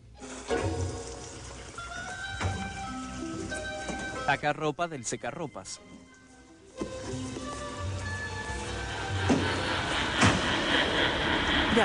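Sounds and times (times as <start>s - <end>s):
washing machine starting up after liquid soap is added: 0.0s - 4.2s, 7.0s - 11.8s
speech: 4.3s - 6.0s.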